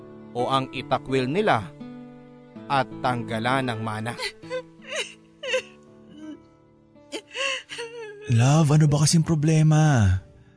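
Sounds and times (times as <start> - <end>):
speech: 0.4 - 1.8, 2.7 - 4.5, 8.3 - 10.2
woman crying and sobbing: 4.0 - 6.4, 7.1 - 8.9.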